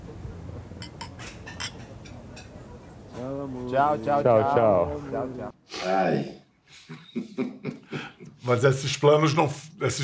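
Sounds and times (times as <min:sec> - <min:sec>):
murmur: 0:00.0 - 0:05.5
glasses clinking in a toast: 0:00.8 - 0:03.0
speech: 0:03.5 - 0:10.0.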